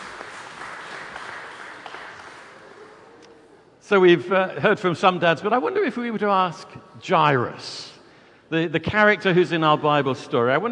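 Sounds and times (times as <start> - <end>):
audience applause: 0.0 - 3.1
speech: 3.9 - 7.9, 8.5 - 10.7.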